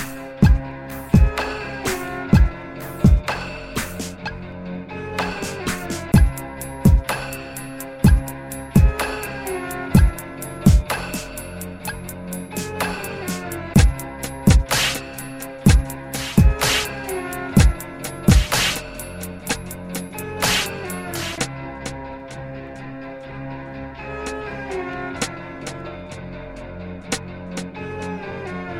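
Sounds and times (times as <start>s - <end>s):
violin over a beat: 0.4s - 4.2s, 5.2s - 22.0s.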